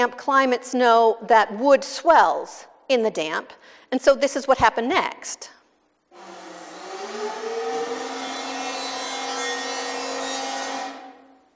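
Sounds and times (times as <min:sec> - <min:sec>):
speech: 0:00.0 - 0:05.6
power planer shaving wood from the top of a door: 0:06.2 - 0:11.3.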